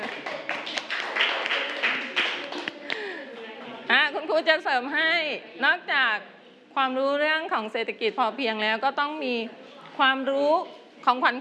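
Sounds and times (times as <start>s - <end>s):
class clapping hands: 0.0s - 3.1s
speech: 4.4s - 11.4s.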